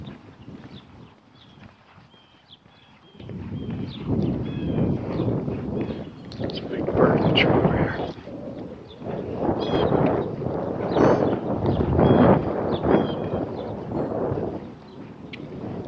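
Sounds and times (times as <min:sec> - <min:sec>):
breeze blowing outdoors: 0:03.2 - 0:15.8.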